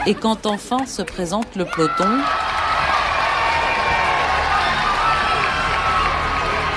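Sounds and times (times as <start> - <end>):
speech: 0.0 - 2.6
applause: 0.8 - 6.7
roadside crowd cheering: 1.4 - 6.7.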